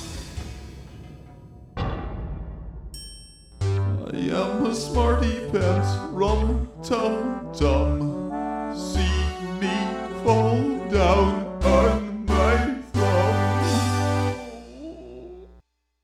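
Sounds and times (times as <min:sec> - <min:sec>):
song with vocals: 0:03.9 - 0:15.5.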